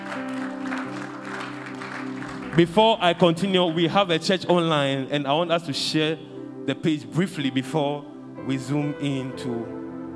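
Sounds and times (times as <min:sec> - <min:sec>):
audience clapping: 0:00.0 - 0:03.9
speech: 0:02.6 - 0:09.8.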